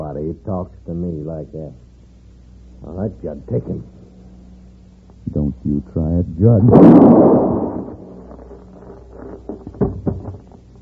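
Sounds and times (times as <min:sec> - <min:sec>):
speech: 0:00.2 - 0:01.9, 0:02.8 - 0:04.0, 0:05.2 - 0:07.6
gunshot in a western showdown: 0:06.7 - 0:08.2
soft thumps: 0:09.1 - 0:10.6.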